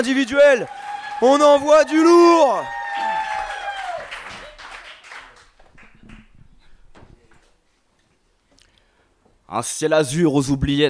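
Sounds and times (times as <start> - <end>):
speech: 0.0 - 2.8, 9.5 - 10.8
audience applause: 0.0 - 6.4.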